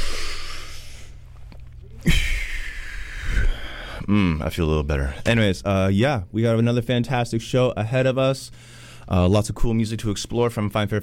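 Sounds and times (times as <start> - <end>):
big deep breath drawn and let out like a long sigh: 0.0 - 1.2, 2.0 - 4.3, 8.5 - 9.1
speech: 4.1 - 11.0.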